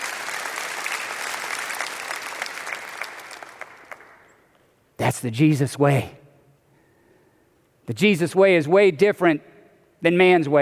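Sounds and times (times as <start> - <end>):
audience applauding: 0.0 - 4.3
speech: 5.0 - 6.2, 7.9 - 10.5.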